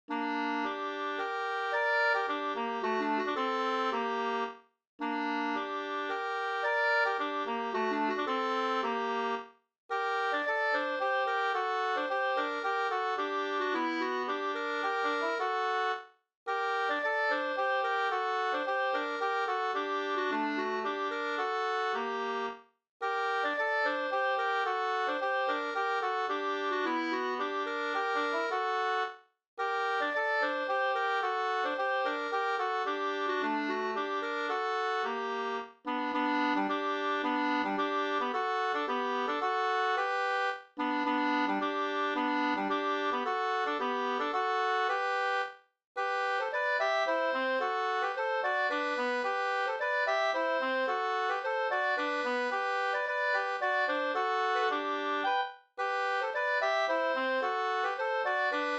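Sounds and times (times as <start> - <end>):
two-part polska folk dance tune: 0.1 - 58.7.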